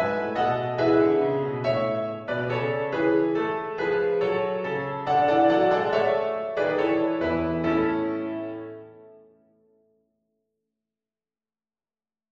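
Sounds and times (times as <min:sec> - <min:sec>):
Christmas piano music: 0:00.0 - 0:09.6.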